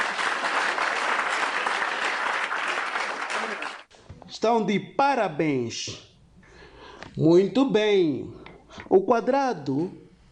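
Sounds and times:
applause: 0.0 - 3.9
speech: 4.4 - 6.1, 7.2 - 10.0.

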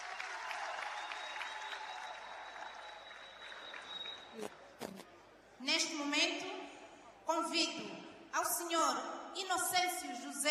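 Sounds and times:
audience applause: 0.0 - 4.3
speech: 4.4 - 6.6, 7.3 - 10.4.

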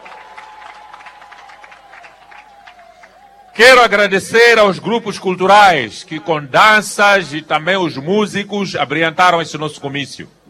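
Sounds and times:
crowd applauding at a rally: 0.0 - 3.6
speech: 3.6 - 10.4.

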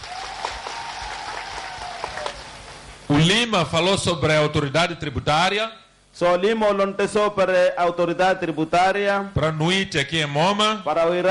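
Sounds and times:
faint crowd applause at a public address in a small Mozambican town: 0.0 - 2.9
speech: 3.2 - 11.2.

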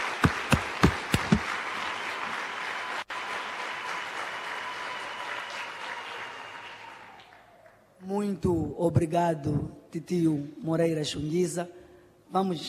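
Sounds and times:
audience applause: 0.0 - 7.8
speech: 8.2 - 12.6.

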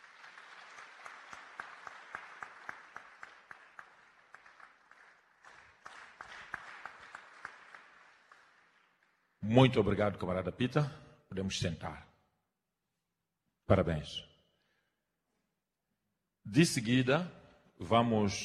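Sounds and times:
round of applause from a group: 0.0 - 9.4
speech: 9.5 - 12.1, 13.7 - 14.3, 16.5 - 18.4.

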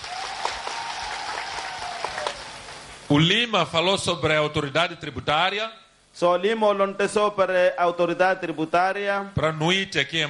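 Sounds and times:
audience applause: 0.0 - 3.0
speech: 3.1 - 10.2.

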